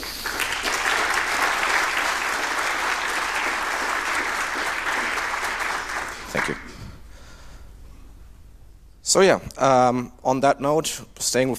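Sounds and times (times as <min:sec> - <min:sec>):
audience applause: 0:00.0 - 0:06.8
speech: 0:09.1 - 0:11.5.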